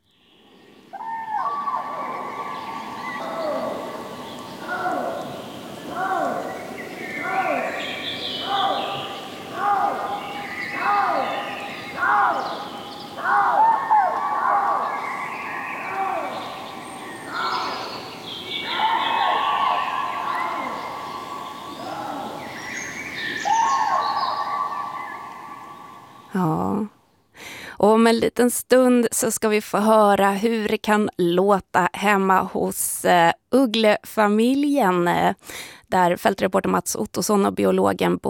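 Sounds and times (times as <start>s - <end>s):
common crane calling at night: 0.9s - 26.3s
speech: 28.1s - 38.2s.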